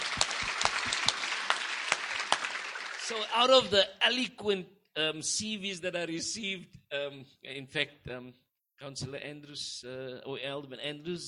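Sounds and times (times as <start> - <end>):
audience applause: 0.0 - 3.6
speech: 3.1 - 11.2.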